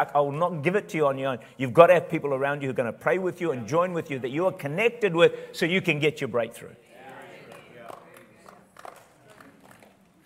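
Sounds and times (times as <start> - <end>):
speech: 0.0 - 6.9
scattered audience hand claps: 7.5 - 10.2.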